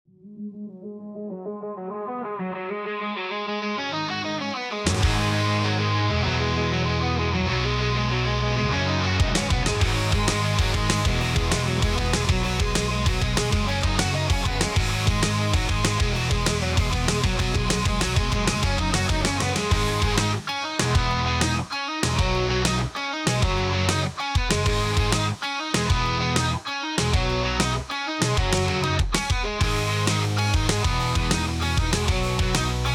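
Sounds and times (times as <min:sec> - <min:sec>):
rock music: 0:02.6 - 0:32.9.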